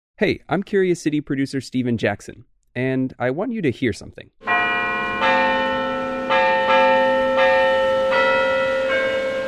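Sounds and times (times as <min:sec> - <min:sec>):
speech: 0:00.2 - 0:04.4
church bells ringing in a steady peal: 0:04.4 - 0:09.4.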